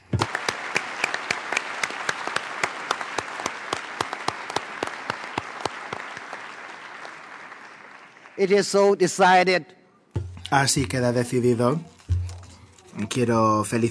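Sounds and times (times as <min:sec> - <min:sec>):
applause in the hall of the UN Permanent Forum on Indigenous Issues: 0:00.0 - 0:09.0
speech: 0:08.4 - 0:09.8, 0:10.5 - 0:12.0, 0:13.0 - 0:13.8.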